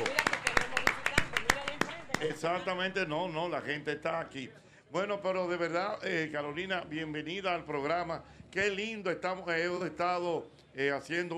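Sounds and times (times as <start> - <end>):
audience applause: 0.0 - 3.0
speech: 2.2 - 11.3.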